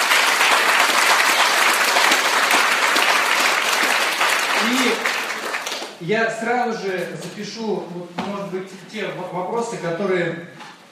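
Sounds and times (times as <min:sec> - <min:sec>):
audience applause at a talk: 0:00.0 - 0:06.0
speech: 0:04.7 - 0:05.1, 0:06.0 - 0:10.6.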